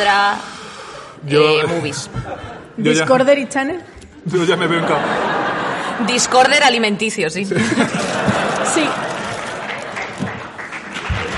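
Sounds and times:
speech: 0.0s - 5.4s, 6.0s - 9.3s
laughter: 1.5s - 3.1s, 4.1s - 6.8s, 7.5s - 11.3s
applause: 8.4s - 11.3s.

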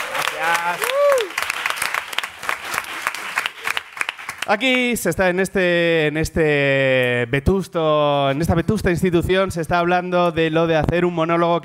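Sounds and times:
audience applause: 0.0s - 4.9s
speech: 0.4s - 1.5s, 4.5s - 11.6s.

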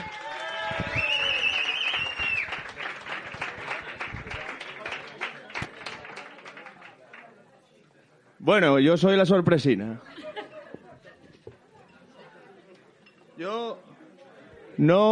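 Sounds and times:
people cheering: 0.0s - 6.9s
audience applause: 0.0s - 7.4s
bright whistle: 0.8s - 2.6s
speech: 8.5s - 10.1s, 14.8s - 15.0s
laughter: 10.0s - 12.6s.

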